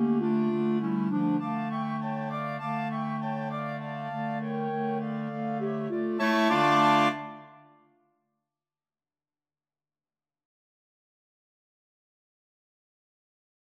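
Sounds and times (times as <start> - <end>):
clarinet choir: 0.0 - 7.8.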